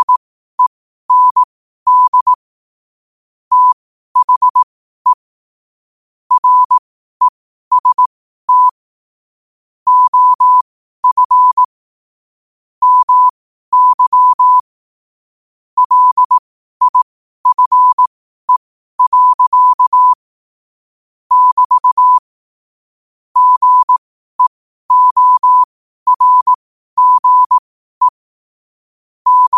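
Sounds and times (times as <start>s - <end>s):
morse code at 5 wpm: 0.0s - 0.2s, 1.1s - 2.4s, 3.5s - 5.2s, 6.3s - 8.8s, 9.9s - 11.7s, 12.8s - 14.7s, 15.8s - 20.2s, 21.3s - 22.3s, 23.4s - 28.2s, 29.3s - 29.5s.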